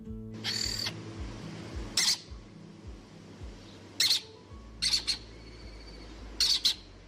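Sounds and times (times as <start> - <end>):
low steady rumble: 0.0 - 7.0
lesser kestrel calls in Quer, Guadalajara: 0.4 - 1.0, 2.0 - 2.3, 4.0 - 7.0.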